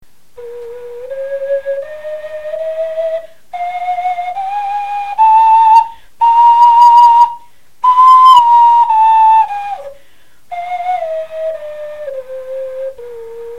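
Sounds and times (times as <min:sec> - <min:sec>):
bone flutes playing a scale: 0:00.4 - 0:13.5.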